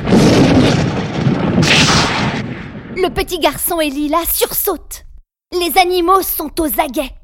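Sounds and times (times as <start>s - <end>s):
thunderclap from lightning: 0.0s - 4.0s
speech: 3.0s - 7.2s.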